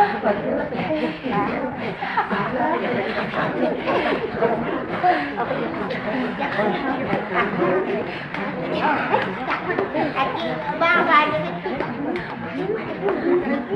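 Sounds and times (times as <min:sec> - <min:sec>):
Inuit ethnic voices: 0:00.0 - 0:13.7
laughter: 0:00.0 - 0:13.7.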